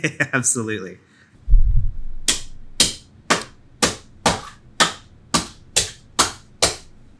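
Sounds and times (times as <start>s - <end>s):
speech: 0.0s - 1.1s
hammer smashing a clock face: 2.2s - 7.1s.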